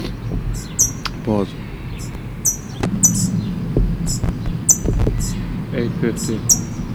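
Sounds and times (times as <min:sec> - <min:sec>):
young parrot begging: 0:00.0 - 0:06.9
speech: 0:01.2 - 0:01.6, 0:06.0 - 0:06.7.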